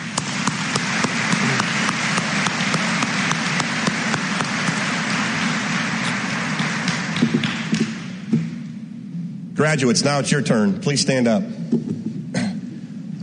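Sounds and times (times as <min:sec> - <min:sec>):
crowd applauding: 0:00.0 - 0:08.3
speech: 0:09.6 - 0:11.9.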